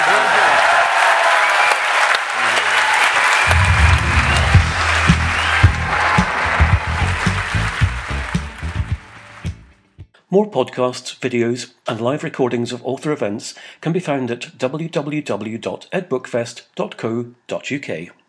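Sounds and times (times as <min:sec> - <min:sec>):
audience applause at an Edinburgh book festival author event: 0:00.0 - 0:09.6
speech: 0:10.3 - 0:18.2.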